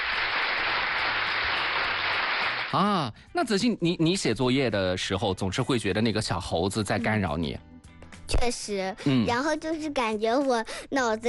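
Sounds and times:
applause: 0.0s - 2.8s
speech: 2.7s - 7.7s, 8.3s - 11.2s.

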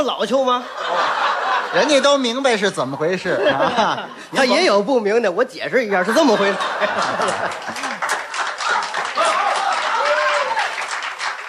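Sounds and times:
speech: 0.0s - 7.9s
voices and laughter: 0.6s - 2.3s, 3.2s - 4.5s, 6.0s - 8.0s
audience applause: 6.8s - 11.4s.

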